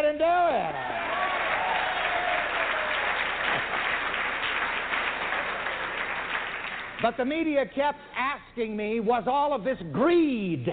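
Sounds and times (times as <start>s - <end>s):
audience clapping: 0.8s - 7.3s
speech: 7.0s - 10.7s.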